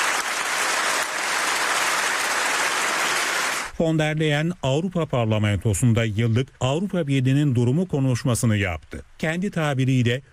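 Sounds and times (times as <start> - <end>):
standing ovation applause from a large crowd in a parliament chamber: 0.0 - 3.7
speech: 3.8 - 10.3.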